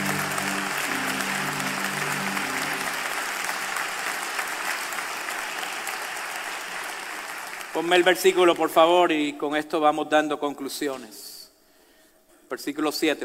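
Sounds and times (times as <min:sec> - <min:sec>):
audience applauding: 0:00.0 - 0:08.7
speech: 0:07.8 - 0:11.3, 0:12.5 - 0:13.2.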